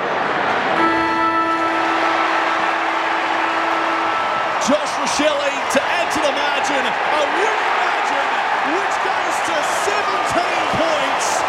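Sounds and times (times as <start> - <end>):
crowd roar at a football match: 0.0 - 11.4
final siren at a football match: 0.8 - 5.7
speech: 4.7 - 7.8, 8.7 - 11.4.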